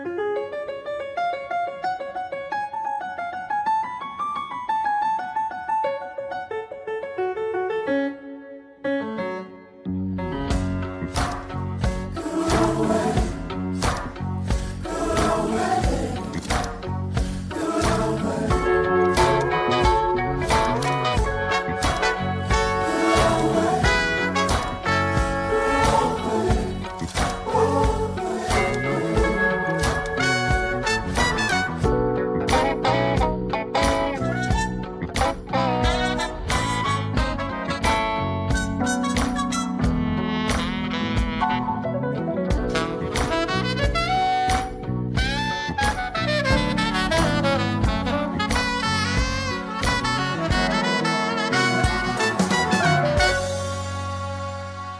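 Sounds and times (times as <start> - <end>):
instrumental music: 0.0 - 54.9.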